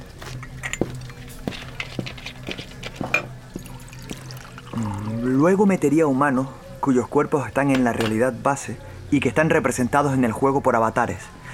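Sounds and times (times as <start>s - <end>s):
water being poured for a guest: 0.0s - 5.1s
speech: 5.2s - 11.4s.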